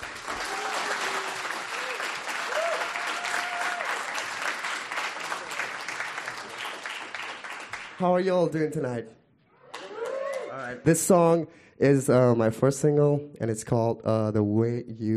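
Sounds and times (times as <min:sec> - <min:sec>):
audience applause: 0:00.0 - 0:08.0
speech: 0:08.0 - 0:09.2, 0:10.6 - 0:15.1.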